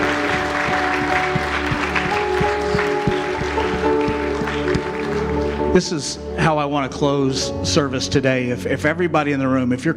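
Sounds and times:
audience hand clapping: 0.0s - 6.2s
speech: 5.8s - 9.9s.

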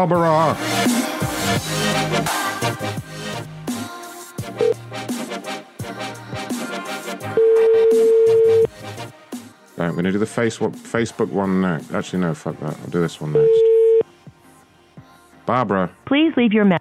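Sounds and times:
speech: 0.0s - 3.5s, 9.8s - 13.7s, 15.5s - 16.7s
long loud beep: 7.4s - 8.7s
unusual ringback tone while calling someone's phone: 7.4s - 8.7s, 13.3s - 14.0s.

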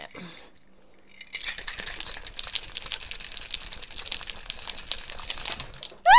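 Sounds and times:
shaken carbonated alcoholic drink fizzing over after opening: 1.3s - 6.0s.

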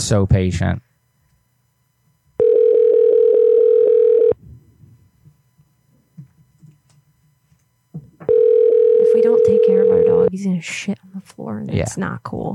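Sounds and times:
speech: 0.1s - 0.9s, 9.2s - 12.5s
telephone dial tone while calling: 2.4s - 4.4s, 8.3s - 10.3s.

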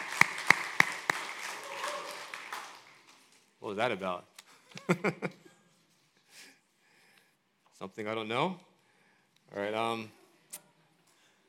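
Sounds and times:
audience clapping welcoming a guest at a morning gathering: 0.0s - 3.5s
speech: 3.7s - 5.5s, 7.8s - 8.7s, 9.5s - 10.2s
laughter: 4.5s - 5.7s.

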